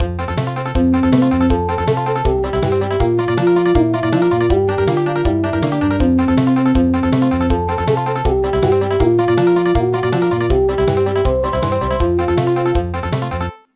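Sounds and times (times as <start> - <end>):
country music: 0.0 - 13.6.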